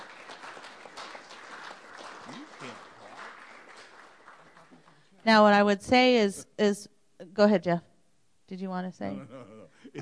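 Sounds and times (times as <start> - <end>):
audience applause: 0.0 - 5.2
speech: 5.2 - 7.9, 8.5 - 10.0.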